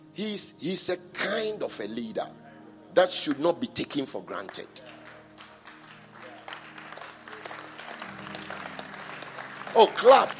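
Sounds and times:
speech: 0:00.2 - 0:02.4, 0:03.0 - 0:05.0, 0:09.8 - 0:10.3
audience clapping: 0:04.3 - 0:10.3.

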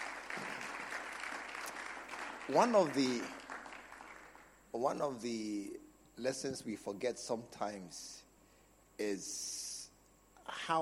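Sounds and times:
audience clapping: 0:00.0 - 0:04.6
speech: 0:02.5 - 0:03.4, 0:04.7 - 0:08.2, 0:09.0 - 0:09.7, 0:10.5 - 0:10.8.

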